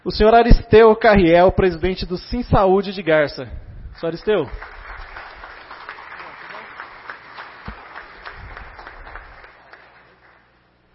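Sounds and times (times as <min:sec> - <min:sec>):
speech: 0:00.0 - 0:04.8
audience applause at a ceremony: 0:04.3 - 0:10.6.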